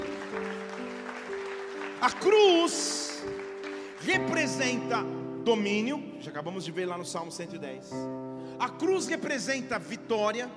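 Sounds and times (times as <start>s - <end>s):
audience applause: 0.0s - 4.3s
speech: 2.0s - 3.4s, 4.0s - 10.5s.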